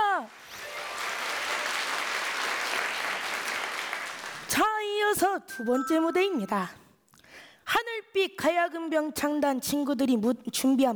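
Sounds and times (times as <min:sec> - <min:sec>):
audience applause: 0:00.0 - 0:04.5
speech: 0:05.2 - 0:06.8, 0:07.7 - 0:10.9.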